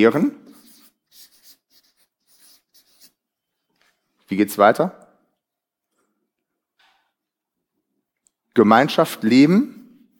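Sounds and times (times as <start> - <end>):
speech: 0.0 - 0.4, 4.3 - 5.0, 8.6 - 9.8
words being written on a board: 0.5 - 3.2.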